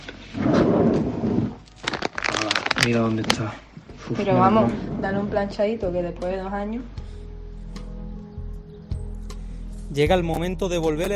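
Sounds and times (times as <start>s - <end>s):
drawer sliding open: 0.3s - 1.6s
speech: 2.8s - 7.0s, 9.9s - 11.1s.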